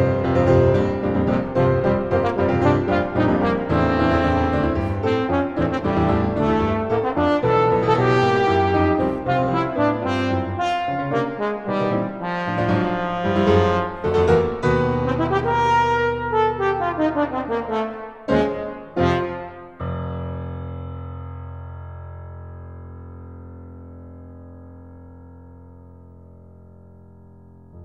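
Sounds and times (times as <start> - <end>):
trombone: 0.0 - 19.8
piano: 0.0 - 27.8.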